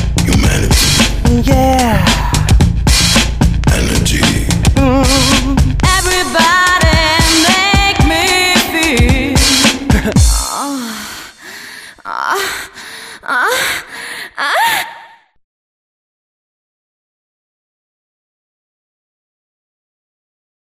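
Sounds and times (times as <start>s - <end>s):
vocals: 0.1s - 15.3s.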